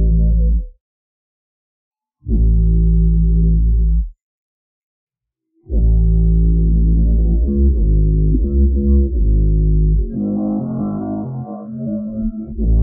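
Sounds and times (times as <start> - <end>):
bass stem: 0.0 - 0.8, 2.2 - 4.2, 5.6 - 12.8.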